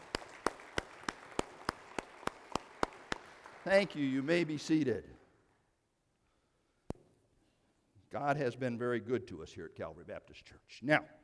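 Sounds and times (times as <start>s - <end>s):
round of applause: 0.0s - 5.2s
speech: 3.6s - 5.1s, 8.2s - 11.2s.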